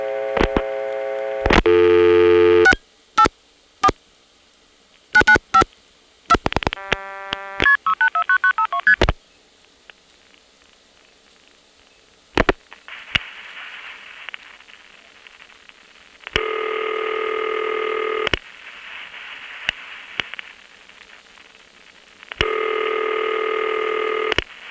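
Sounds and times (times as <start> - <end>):
telephone exchange test line tones: 0.0 - 4.0, 5.2 - 5.7, 6.8 - 9.0, 16.3 - 18.4, 22.4 - 24.4
rapid multi-frequency beeps: 5.2 - 5.6
sharp clicks and ticks: 5.2 - 9.1.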